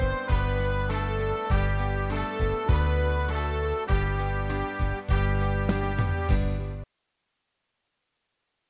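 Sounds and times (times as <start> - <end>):
trumpets playing: 0.0 - 6.8.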